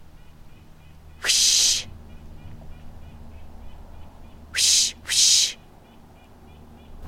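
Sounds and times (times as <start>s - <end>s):
agitated bird calling in distress: 1.2s - 1.9s, 4.5s - 5.7s.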